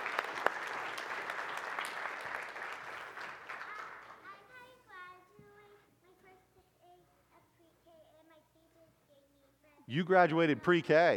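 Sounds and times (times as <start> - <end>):
group clapping: 0.0 - 4.4
speech: 9.9 - 11.1.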